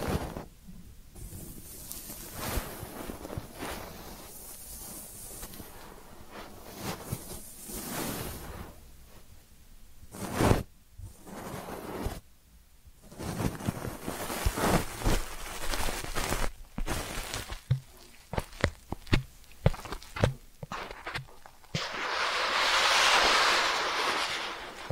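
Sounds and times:
ear cleaning rubbing, scratching and rustling: 0:01.2 - 0:08.5, 0:13.1 - 0:24.8
sharp taps and crackles: 0:14.3 - 0:21.9
bright swishing sweep: 0:21.8 - 0:24.8.

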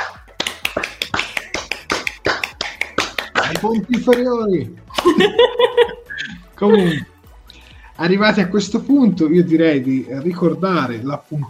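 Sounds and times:
applause: 0:00.4 - 0:04.2
laughter: 0:02.8 - 0:07.1
speech: 0:03.5 - 0:07.1, 0:08.0 - 0:11.4.

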